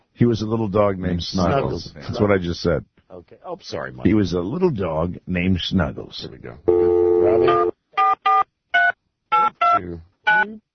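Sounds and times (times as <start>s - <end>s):
speech: 0.2s - 7.7s, 9.8s - 10.7s
telephone dialing beeps: 6.7s - 10.4s.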